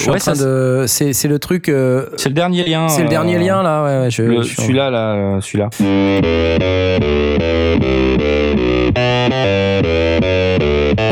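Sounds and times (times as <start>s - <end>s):
speech: 0.0s - 10.0s
heavily distorted synth-driven guitar through Marshall amplifier: 5.8s - 11.1s.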